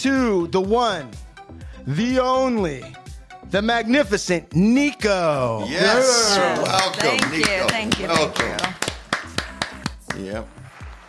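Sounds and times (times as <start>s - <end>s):
speech: 0.0s - 1.2s, 1.8s - 8.7s, 10.2s - 10.6s
crowd applause: 6.5s - 11.0s.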